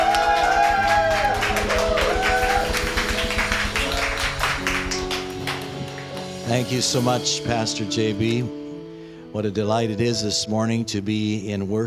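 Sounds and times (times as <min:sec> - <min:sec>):
church congregation applauding to welcome the pastor: 0:00.0 - 0:06.7
sustained music: 0:00.0 - 0:11.8
speech: 0:06.5 - 0:08.6, 0:09.3 - 0:11.8.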